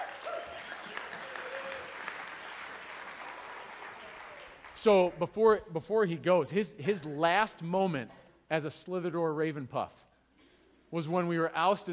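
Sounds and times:
audience clapping: 0.0 - 5.2
speech: 4.8 - 10.1, 10.9 - 11.9.

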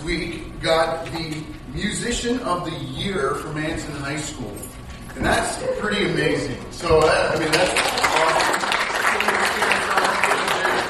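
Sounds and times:
speech: 0.0 - 8.1
audience applause: 7.3 - 10.8.

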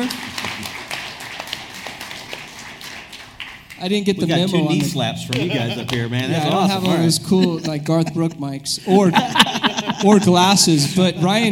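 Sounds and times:
audience applause: 0.0 - 7.6
speech: 3.8 - 11.5
laughter: 4.1 - 11.5.

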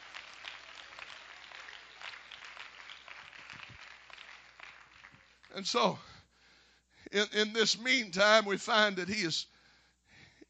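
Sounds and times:
audience clapping hands: 0.0 - 6.0
speech: 5.6 - 6.1, 7.1 - 9.5.

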